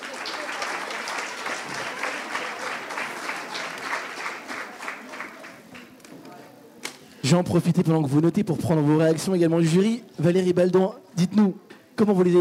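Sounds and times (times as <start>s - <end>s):
audience applause: 0.0s - 6.0s
speech: 7.2s - 12.4s.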